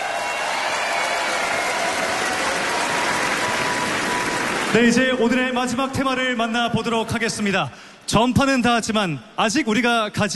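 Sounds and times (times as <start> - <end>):
audience applause: 0.0 - 5.2
speech: 4.7 - 10.3.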